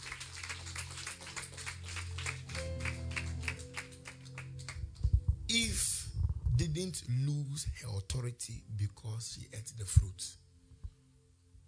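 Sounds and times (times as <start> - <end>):
audience clapping hands: 0.0 - 5.1
speech: 6.6 - 10.4.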